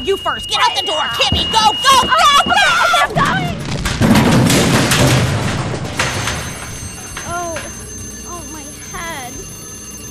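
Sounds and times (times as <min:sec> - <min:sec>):
speech: 0:00.1 - 0:03.6
house explosion blast: 0:03.1 - 0:06.8.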